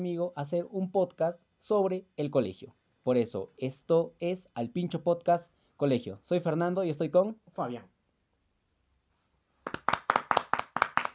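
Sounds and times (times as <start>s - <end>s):
speech: 0.0s - 7.9s
hand clapping applause: 9.6s - 11.1s.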